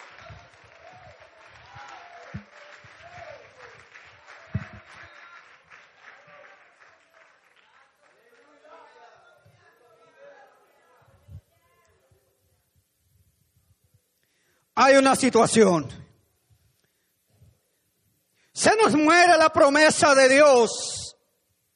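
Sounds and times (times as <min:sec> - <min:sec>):
voices cheering: 0:00.0 - 0:06.8
audience applause: 0:00.0 - 0:09.3
speech: 0:14.8 - 0:16.0, 0:19.6 - 0:21.0.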